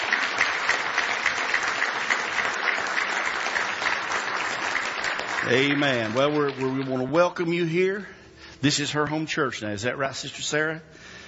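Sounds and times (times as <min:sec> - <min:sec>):
church congregation applauding a newly arrived guest: 0:00.0 - 0:07.7
speech: 0:05.4 - 0:10.9.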